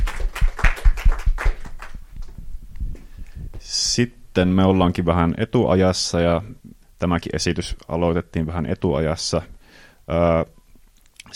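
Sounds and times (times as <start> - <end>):
audience applause: 0.0 - 2.2
speech: 4.0 - 10.6.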